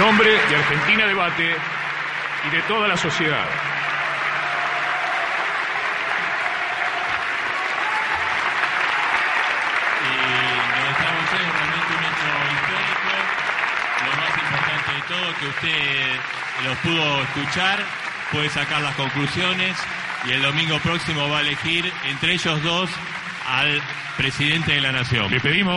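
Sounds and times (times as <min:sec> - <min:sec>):
sustained applause from a large audience: 0:00.0 - 0:25.7
speech: 0:00.2 - 0:03.9, 0:15.1 - 0:25.7.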